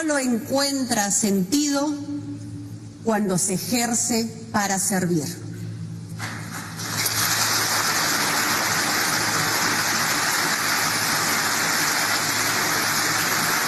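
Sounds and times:
speech: 0.0 - 2.4, 3.0 - 5.5
applause from supporters and guests: 6.2 - 13.6.

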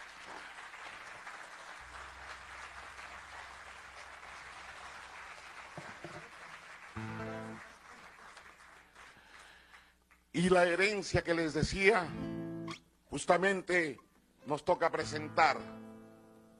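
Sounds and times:
audience applause: 0.0 - 10.2
speech: 10.4 - 12.3, 13.2 - 15.8.

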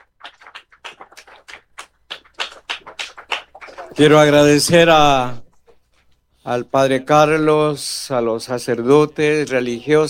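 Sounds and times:
audience applause: 0.0 - 4.6
speech: 4.0 - 5.4, 6.4 - 10.0.

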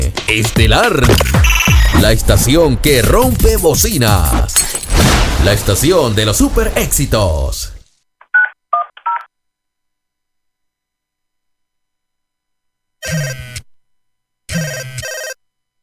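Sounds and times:
speech: 0.0 - 4.7, 5.4 - 7.7
long buzzing telephone rings: 1.2 - 2.0, 13.0 - 13.6, 14.5 - 15.4
touch-tone dialing beeps: 1.4 - 2.0.

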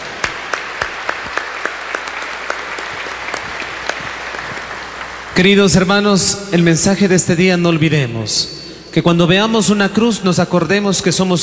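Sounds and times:
crowd applauding: 0.0 - 5.8
speech: 5.4 - 11.4.

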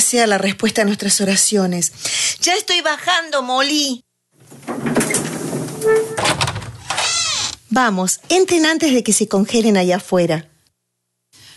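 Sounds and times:
speech: 0.1 - 4.1, 7.7 - 10.5
rustling movement: 4.4 - 6.6
front door pulled open with creaking scraping and squeal: 4.4 - 7.6.

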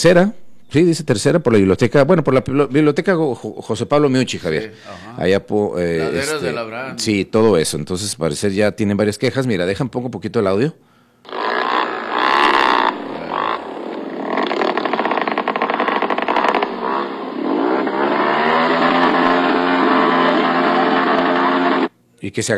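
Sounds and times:
speech: 0.0 - 11.4, 22.3 - 22.5
motorcycles revving in a noise contest: 11.3 - 21.9.

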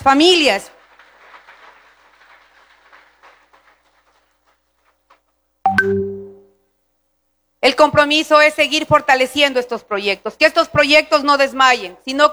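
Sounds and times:
speech: 0.0 - 0.8, 7.7 - 12.3
crowd applauding: 0.0 - 5.2.

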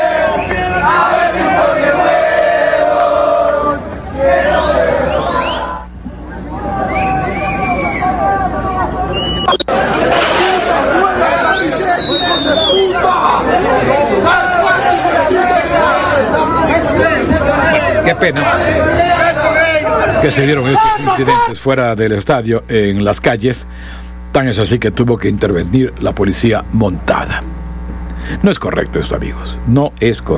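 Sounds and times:
football fans shouting: 0.0 - 21.6
speech: 20.4 - 27.6, 28.2 - 30.3.

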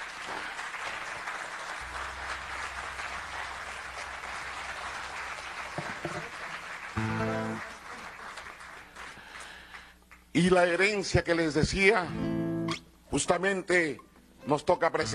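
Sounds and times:
audience applause: 0.0 - 10.2
speech: 6.0 - 6.3, 10.4 - 12.3, 13.1 - 15.1.

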